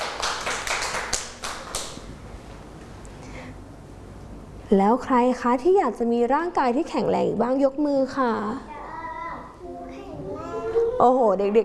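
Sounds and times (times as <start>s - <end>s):
children clapping: 0.0s - 2.1s
speech: 4.7s - 8.7s, 11.0s - 11.6s.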